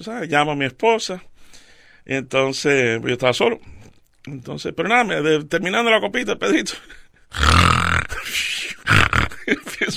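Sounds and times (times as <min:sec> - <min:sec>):
speech: 0:00.0 - 0:09.9
man imitating snoring with his voice: 0:07.3 - 0:08.3, 0:08.9 - 0:09.4.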